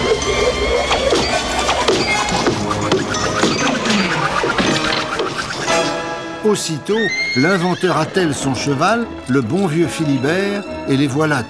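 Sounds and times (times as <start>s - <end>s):
wood-cutting machine sputtering: 0.0s - 6.2s
speech: 6.5s - 11.4s.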